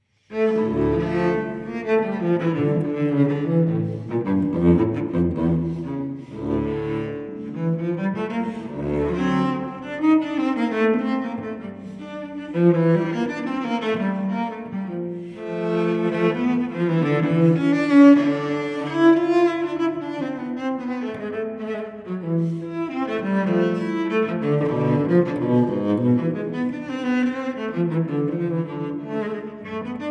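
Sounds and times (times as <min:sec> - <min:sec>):
solo cello suite movement in D minor: 0:00.0 - 0:30.0.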